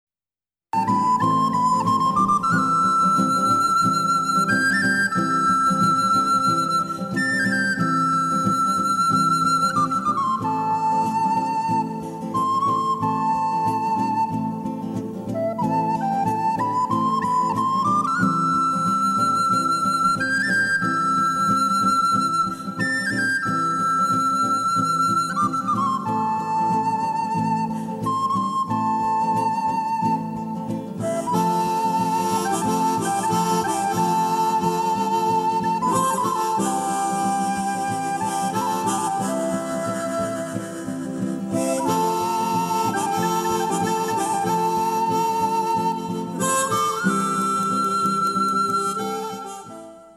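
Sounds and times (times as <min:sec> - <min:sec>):
instrumental piece: 0:00.8 - 0:50.1.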